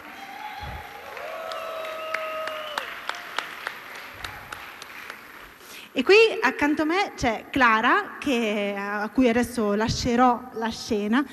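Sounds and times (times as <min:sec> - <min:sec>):
audience applause: 0:00.0 - 0:05.6
speech: 0:06.0 - 0:11.3.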